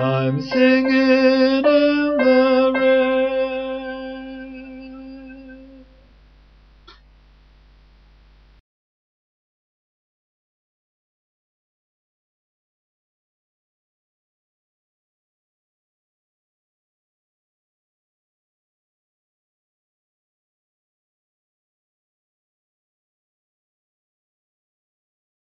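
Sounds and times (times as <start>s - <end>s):
soprano singing: 0.0s - 6.0s.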